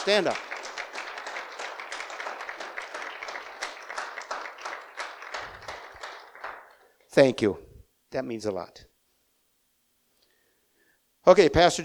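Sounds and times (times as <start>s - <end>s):
speech: 0.0s - 0.5s, 7.2s - 8.9s, 11.2s - 11.8s
audience clapping: 0.0s - 7.1s.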